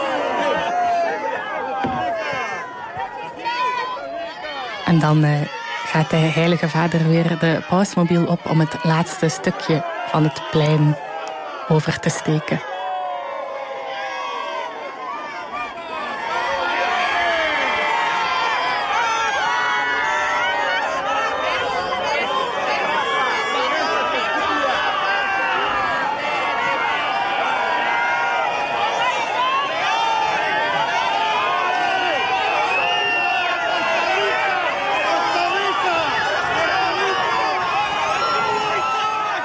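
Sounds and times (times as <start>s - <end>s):
large crowd in St Peter's Square cheering to greet the Pope: 0.0s - 39.4s
speech: 4.9s - 11.1s, 11.7s - 12.7s.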